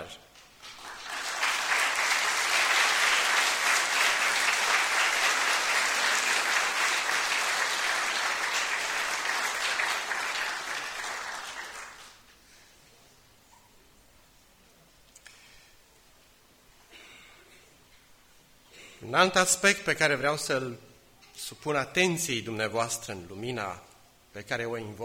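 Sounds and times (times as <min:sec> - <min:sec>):
church audience applauding: 0:00.6 - 0:12.3
speech: 0:19.1 - 0:20.9, 0:21.5 - 0:25.0.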